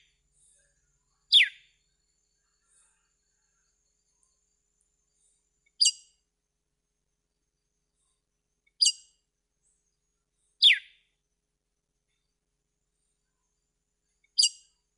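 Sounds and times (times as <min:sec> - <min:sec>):
red-cowled cardinal whistled song: 0:10.6 - 0:10.9.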